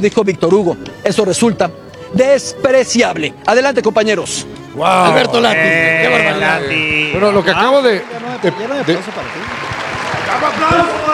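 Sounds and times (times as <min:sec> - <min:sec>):
speech: 0:00.0 - 0:09.7, 0:10.3 - 0:11.1
studio audience applause: 0:06.2 - 0:11.1.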